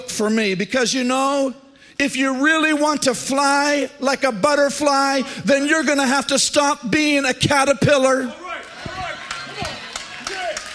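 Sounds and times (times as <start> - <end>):
speech: 0.2 - 8.4
hand claps: 8.6 - 10.7.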